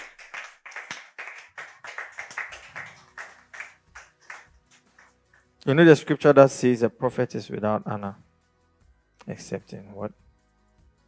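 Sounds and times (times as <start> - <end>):
audience clapping hands: 0.0 - 5.5
speech: 5.6 - 8.3, 9.3 - 10.2.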